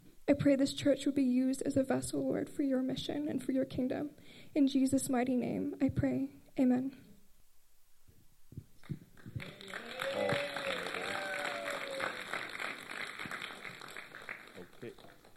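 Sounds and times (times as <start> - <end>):
speech: 0.3 - 7.1
audience hand claps: 8.8 - 15.3
voices cheering: 9.4 - 15.0.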